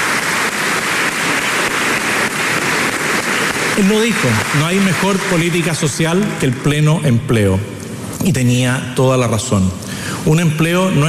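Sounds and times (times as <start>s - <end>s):
audience applause: 0.0s - 7.0s
speech: 3.8s - 11.0s.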